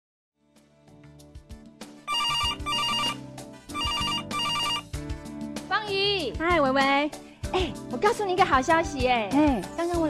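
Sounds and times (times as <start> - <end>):
telephone ringing tone: 2.1 - 4.8
speech: 6.3 - 10.0.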